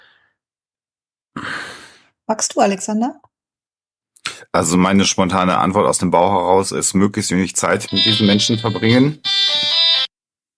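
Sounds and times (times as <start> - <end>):
speech: 2.3 - 3.3, 4.5 - 9.4
doorbell ringing: 7.9 - 10.1.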